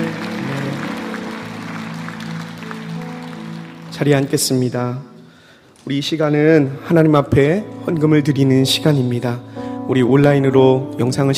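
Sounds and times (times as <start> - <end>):
audience applauding: 0.0 - 4.8
speech: 4.0 - 5.1, 5.8 - 11.3.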